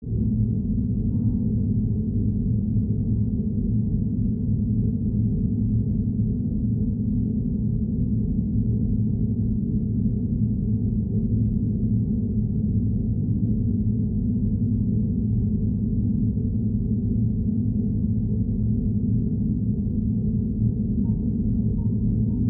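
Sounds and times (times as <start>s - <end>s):
ambient mid bass drones and tones: 0.0s - 22.4s.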